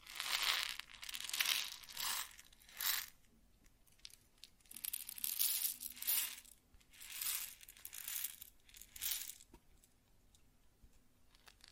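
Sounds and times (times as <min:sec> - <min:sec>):
grain sounds: 0:00.0 - 0:03.2, 0:03.9 - 0:09.5.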